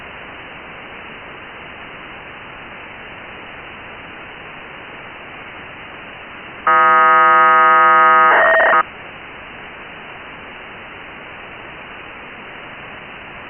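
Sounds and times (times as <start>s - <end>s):
1k2 BPSK radio data signal on 145880: 6.7s - 8.8s.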